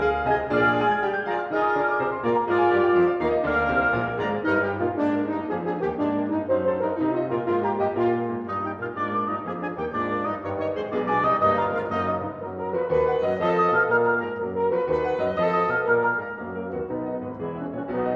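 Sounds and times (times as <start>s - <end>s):
wind quintet playing fourth movement: 0.0s - 18.1s.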